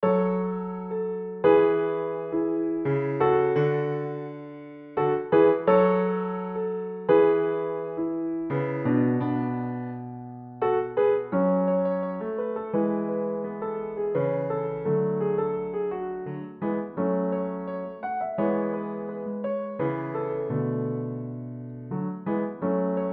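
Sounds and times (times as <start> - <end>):
solo piano: 0.0 - 23.1.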